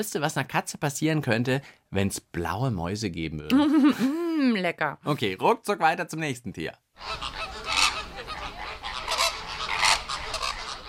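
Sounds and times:
speech: 0:00.0 - 0:07.4
flamingo calls: 0:07.0 - 0:10.8.

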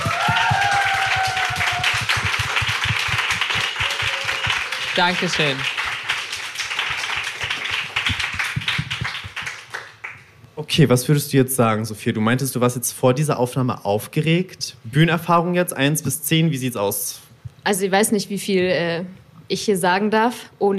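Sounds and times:
applause: 0:00.0 - 0:10.4
speech: 0:05.0 - 0:05.8, 0:10.8 - 0:20.7.

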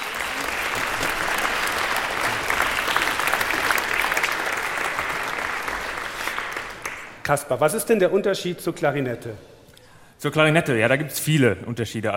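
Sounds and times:
audience applause: 0:00.0 - 0:07.2
speech: 0:07.3 - 0:09.5, 0:10.2 - 0:12.1.

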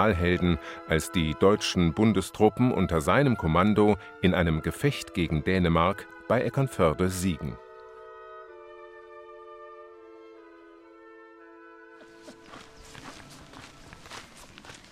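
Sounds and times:
speech: 0:00.0 - 0:07.6
sustained tonal music: 0:00.0 - 0:14.9
footsteps walking out of a forest downhill toward a village: 0:12.0 - 0:14.9.

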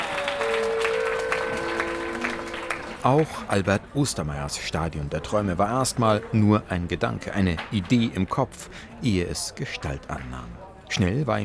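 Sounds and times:
audience applauding: 0:00.0 - 0:03.5
speech: 0:03.0 - 0:11.4.

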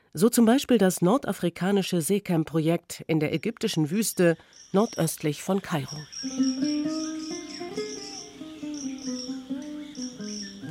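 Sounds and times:
speech: 0:00.1 - 0:07.4
birds twittering: 0:03.3 - 0:10.7.

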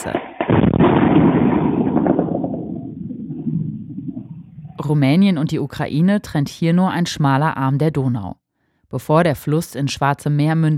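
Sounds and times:
speech: 0:00.0 - 0:00.3, 0:04.8 - 0:10.7
Ukrainian air defense gunfire against attack drones: 0:00.1 - 0:04.4.

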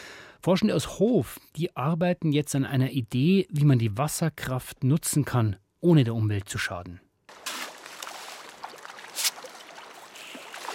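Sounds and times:
speech: 0:00.4 - 0:07.0
trout splashing during feeding at fish farm Rameil in Nordhessen: 0:07.3 - 0:10.7.

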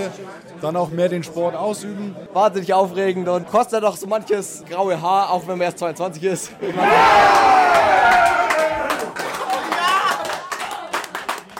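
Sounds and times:
speech: 0:00.0 - 0:08.4
crowd cheering: 0:06.6 - 0:11.5
crowd clapping: 0:07.3 - 0:11.5.

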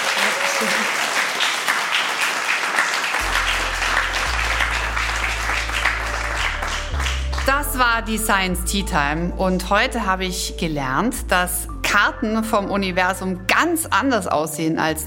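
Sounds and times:
audience applause: 0:00.0 - 0:07.5
speech: 0:00.6 - 0:01.0, 0:07.8 - 0:15.0.

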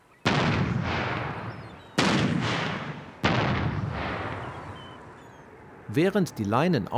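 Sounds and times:
boat-mounted acoustic bird-scaring cannon firing: 0:00.2 - 0:05.1
rumbling echo across open water: 0:00.3 - 0:05.2
speech: 0:05.9 - 0:06.9.

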